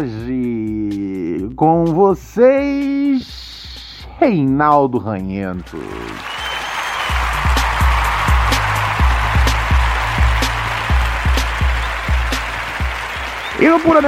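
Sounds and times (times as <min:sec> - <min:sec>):
speech: 0:00.0 - 0:00.6, 0:01.6 - 0:03.6, 0:04.2 - 0:06.3, 0:13.6 - 0:14.0
applause: 0:05.6 - 0:14.0.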